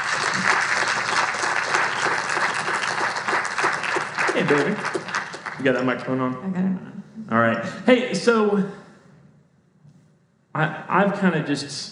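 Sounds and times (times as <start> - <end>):
audience applause: 0.0 - 6.3
speech: 4.5 - 8.8, 10.6 - 11.9.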